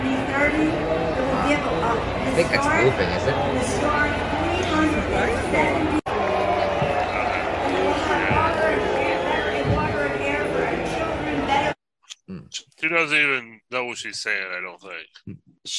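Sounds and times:
speech: 0:00.5 - 0:06.0, 0:12.8 - 0:15.7
large crowd booing: 0:00.9 - 0:11.2.

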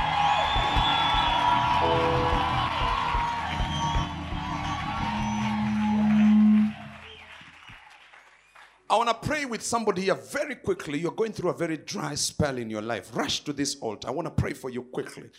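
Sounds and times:
audience shouting praise: 0:00.0 - 0:08.7
speech: 0:09.0 - 0:15.3.

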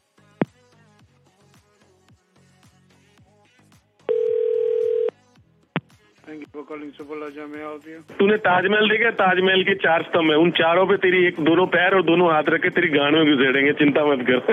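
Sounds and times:
telephone line tones as a call to a hotel front desk is transferred: 0:04.1 - 0:05.1
speech: 0:06.3 - 0:14.5.

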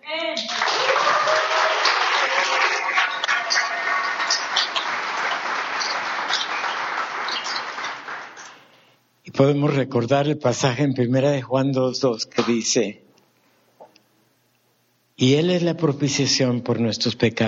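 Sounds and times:
audience applause: 0:00.4 - 0:08.7
speech: 0:09.4 - 0:13.0, 0:15.2 - 0:17.4.

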